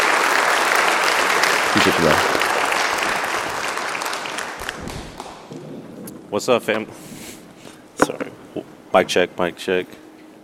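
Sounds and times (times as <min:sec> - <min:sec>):
audience applause greeting a speaker invited onto the stage: 0:00.0 - 0:05.6
speech: 0:01.8 - 0:02.4, 0:06.3 - 0:07.1, 0:08.9 - 0:10.0.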